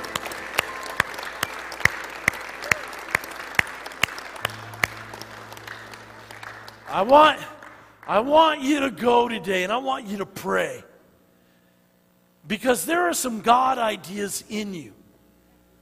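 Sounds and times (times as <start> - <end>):
audience clapping: 0.0 - 8.9
speech: 6.9 - 7.5, 8.1 - 10.9, 12.5 - 15.0.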